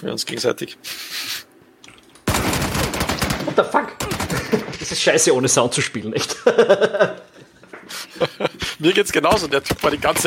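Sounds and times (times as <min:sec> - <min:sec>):
speech: 0:00.0 - 0:01.5, 0:03.5 - 0:04.1, 0:04.8 - 0:07.3, 0:07.9 - 0:10.2
video game gunfire: 0:02.2 - 0:04.8, 0:09.3 - 0:10.2
laughter: 0:03.4 - 0:05.0, 0:06.1 - 0:08.9.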